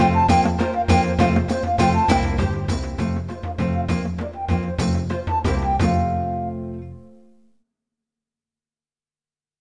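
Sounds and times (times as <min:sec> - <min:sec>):
jig tune: 0:00.0 - 0:07.1.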